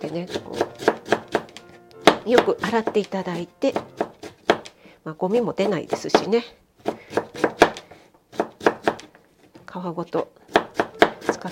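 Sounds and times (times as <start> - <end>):
speech: 0.0 - 1.0, 2.2 - 4.0, 5.0 - 6.6, 9.8 - 10.5
knife mincing carrots on cutting board: 0.0 - 9.2, 10.5 - 11.5.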